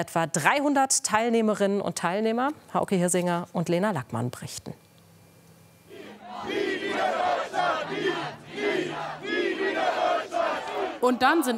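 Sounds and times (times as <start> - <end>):
speech: 0.0 - 4.8, 11.0 - 11.5
protest march crowd chanting in Bremen Neustadt: 5.9 - 11.5.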